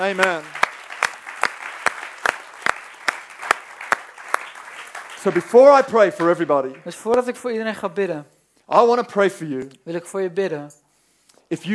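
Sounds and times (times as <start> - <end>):
speech: 0.0 - 0.6, 5.2 - 10.8, 11.5 - 11.7
church congregation clapping in unison: 0.0 - 7.5.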